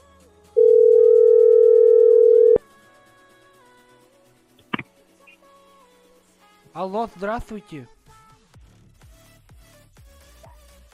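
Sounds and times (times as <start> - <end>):
low-pitched ringback tone of an unanswered phone call: 0.6 - 2.6
speech: 6.8 - 8.0.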